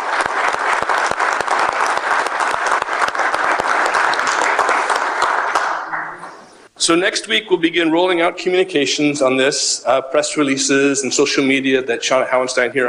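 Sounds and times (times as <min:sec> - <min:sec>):
round of applause: 0:00.0 - 0:06.4
speech: 0:06.8 - 0:12.8.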